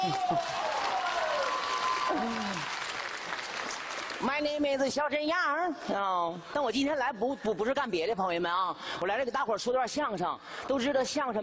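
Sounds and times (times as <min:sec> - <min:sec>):
speech: 0:00.0 - 0:00.6, 0:04.2 - 0:11.4
audience applause: 0:00.0 - 0:04.4.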